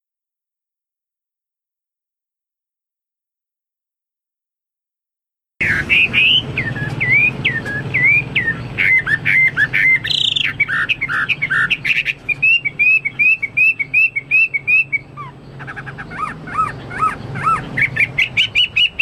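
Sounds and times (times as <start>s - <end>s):
Chinese hwamei whistled song: 5.6s - 15.4s, 16.1s - 18.9s.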